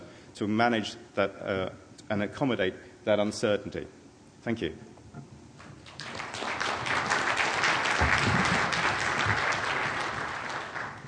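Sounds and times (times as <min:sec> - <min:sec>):
speech: 0:00.4 - 0:05.3
audience applause: 0:05.9 - 0:11.0.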